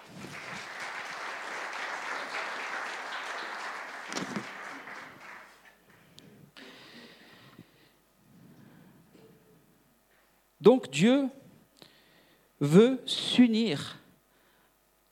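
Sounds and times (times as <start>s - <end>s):
audience applause: 0.0s - 5.8s
speech: 10.6s - 11.4s, 12.6s - 14.0s.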